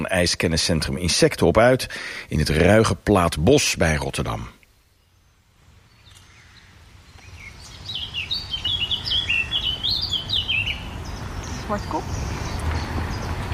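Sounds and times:
speech: 0.0 - 4.6, 11.7 - 12.2
blackcap singing a fluty warble: 7.2 - 13.5.

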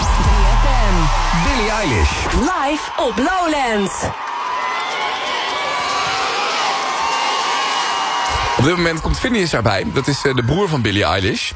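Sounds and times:
big festival crowd cheering and shouting at a live pop show at Lowlands: 0.0 - 11.5
speech: 1.6 - 4.2, 8.6 - 11.5.

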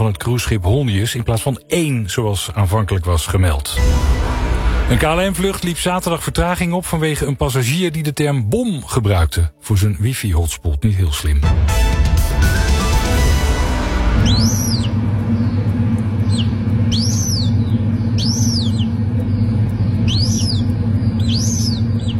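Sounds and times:
speech: 0.0 - 4.3, 4.9 - 11.9
low hum: 0.0 - 11.4, 12.1 - 22.1
rushing noise: 3.7 - 7.4, 11.6 - 22.1
newly hatched black-tailed godwit chick peeping: 14.2 - 22.1.

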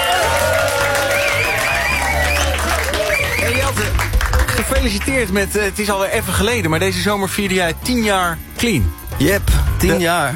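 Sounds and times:
audience applause: 0.0 - 5.1
speech: 4.8 - 10.3.

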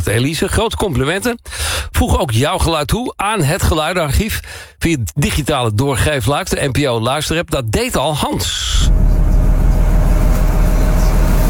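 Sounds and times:
speech: 0.0 - 9.1
ferry engine idling: 8.6 - 11.4.

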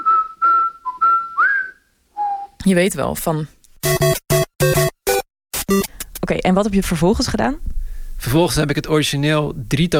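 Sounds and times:
person whistling a tune for a parrot: 0.0 - 2.6
speech: 2.6 - 4.2, 6.3 - 7.7, 8.3 - 9.9.

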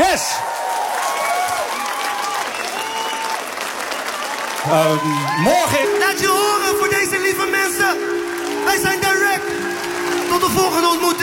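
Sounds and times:
audience applause: 0.0 - 11.2
speech: 0.2 - 0.6, 4.6 - 11.2.

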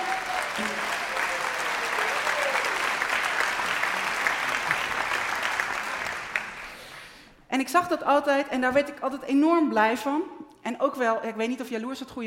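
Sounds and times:
audience applause: 0.0 - 7.1
speech: 7.6 - 12.2.

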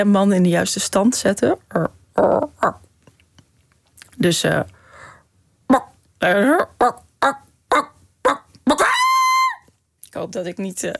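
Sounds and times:
speech: 0.0 - 2.8, 4.2 - 4.8, 5.7 - 7.4, 10.2 - 10.9
person's voice imitating low staccato cackling calls: 1.8 - 2.8, 5.7 - 9.7.

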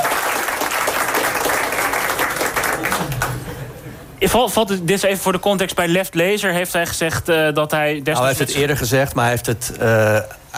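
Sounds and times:
audience applauding: 0.0 - 3.7
speech: 4.2 - 10.5.

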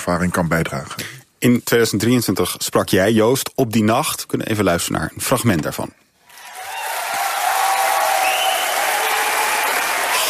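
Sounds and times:
speech: 0.1 - 6.0
audience applauding in a hall: 6.3 - 10.2.

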